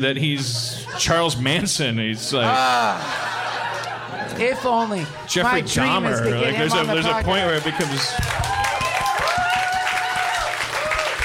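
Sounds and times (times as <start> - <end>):
speech: 0.0 - 3.4, 4.1 - 8.6
laughter: 0.0 - 8.3
audience applause: 5.8 - 11.2.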